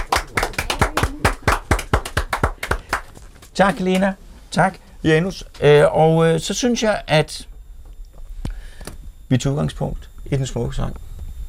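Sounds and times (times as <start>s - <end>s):
audience clapping: 0.0s - 4.2s
speech: 3.6s - 7.5s, 9.3s - 11.0s.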